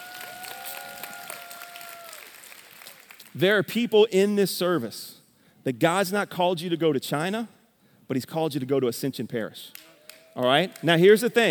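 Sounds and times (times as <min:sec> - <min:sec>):
audience clapping hands: 0:00.0 - 0:03.4, 0:09.7 - 0:11.4
speech: 0:03.4 - 0:11.4.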